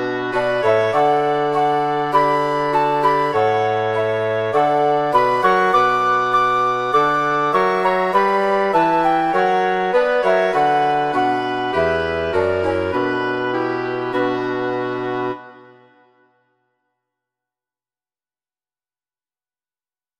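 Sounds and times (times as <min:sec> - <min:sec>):
wind quartet playing: 0:00.0 - 0:15.8.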